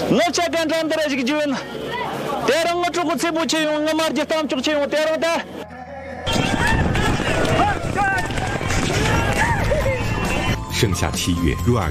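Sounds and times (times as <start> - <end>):
speech: 0.1 - 5.6, 10.8 - 11.9
wind noise on the Zoige grassland: 6.3 - 10.1
horses galloping across the Zoige grassland: 6.3 - 10.6.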